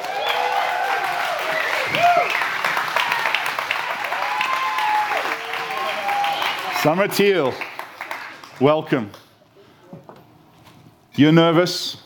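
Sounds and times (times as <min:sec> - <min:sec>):
crowd whooping and cheering: 0:00.0 - 0:07.0
audience applause welcoming a guest onto a stage: 0:00.0 - 0:08.7
speech: 0:06.8 - 0:07.7, 0:08.6 - 0:09.2, 0:11.2 - 0:12.0.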